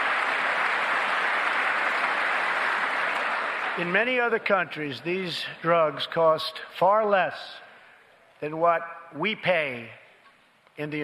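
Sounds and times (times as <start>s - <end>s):
man clapping his hands: 0.0s - 4.0s
speech: 3.8s - 7.6s, 8.4s - 10.0s, 10.8s - 11.0s.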